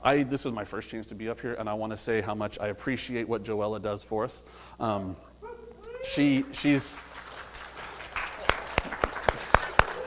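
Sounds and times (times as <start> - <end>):
speech: 0.0 - 7.1
church congregation clapping during a service: 6.2 - 10.0.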